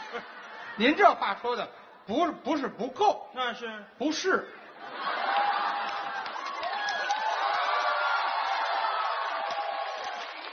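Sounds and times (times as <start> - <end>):
speech: 0.1 - 5.1
audience applause: 5.0 - 10.5.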